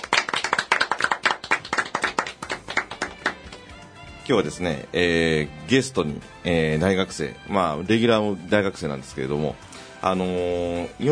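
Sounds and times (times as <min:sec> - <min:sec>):
applause opening a live talk event: 0:00.0 - 0:03.9
speech: 0:04.3 - 0:11.1.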